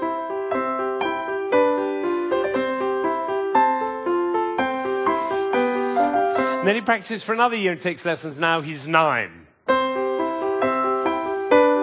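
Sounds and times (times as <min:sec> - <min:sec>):
eight-year-old child playing piano: 0:00.0 - 0:06.6, 0:09.7 - 0:11.8
speech: 0:06.6 - 0:09.4.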